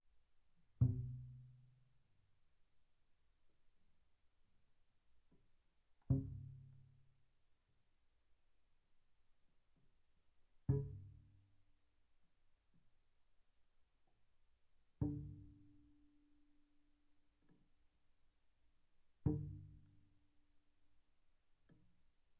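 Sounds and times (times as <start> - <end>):
double bass pizzicato sul E pianissimo: 0.8 - 1.9, 6.0 - 7.0, 10.7 - 11.5, 15.0 - 16.0, 19.2 - 20.1.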